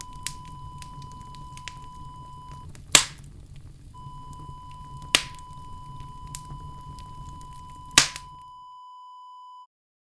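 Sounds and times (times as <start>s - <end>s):
fire crackling: 0.0s - 8.5s.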